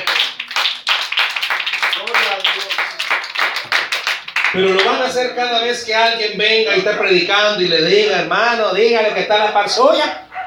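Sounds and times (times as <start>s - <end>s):
audience applause: 0.0s - 5.0s
speech: 4.6s - 10.2s.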